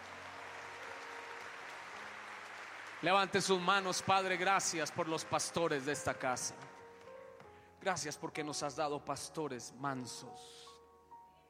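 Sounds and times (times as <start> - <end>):
crowd applauding: 0.0 - 7.2
speech: 3.0 - 6.8, 7.8 - 10.7.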